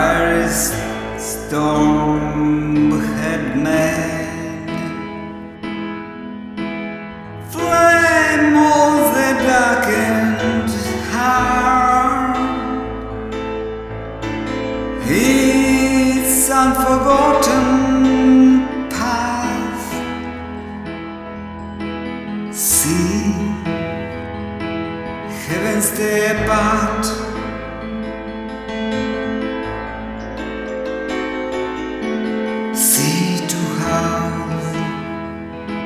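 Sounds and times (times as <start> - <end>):
piano piece: 0.0 - 35.8.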